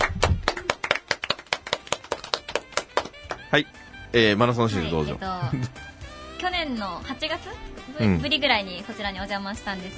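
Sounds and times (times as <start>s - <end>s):
hand clapping: 0.0s - 3.5s
speech: 3.5s - 9.9s.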